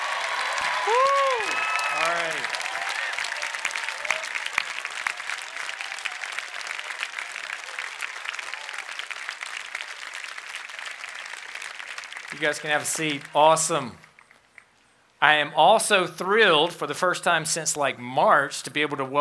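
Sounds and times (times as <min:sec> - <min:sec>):
crowd applauding and cheering for a university freshman class: 0:00.0 - 0:14.7
speech: 0:00.8 - 0:02.6, 0:12.4 - 0:14.0, 0:15.2 - 0:19.1.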